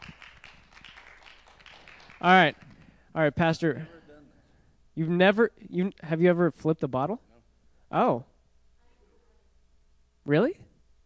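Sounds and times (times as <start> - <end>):
audience clapping: 0.0 - 3.0
speech: 2.2 - 4.0, 5.0 - 7.3, 7.9 - 8.3, 10.3 - 10.7.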